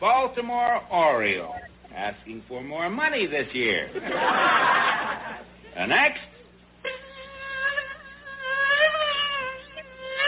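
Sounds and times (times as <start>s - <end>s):
speech: 0.0s - 6.2s
laughter: 3.9s - 5.8s
voice imitating mosquito buzzing: 6.8s - 10.2s.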